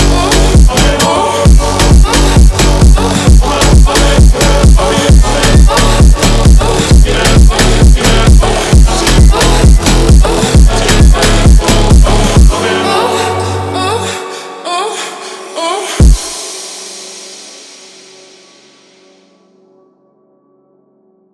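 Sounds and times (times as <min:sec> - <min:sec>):
funk remix music: 0:00.0 - 0:13.6, 0:15.7 - 0:18.5.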